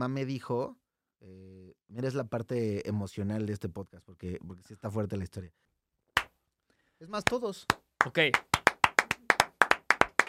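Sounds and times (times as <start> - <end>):
speech: 0.0 - 5.7, 7.0 - 8.5
hand claps: 6.2 - 6.4, 7.2 - 10.2.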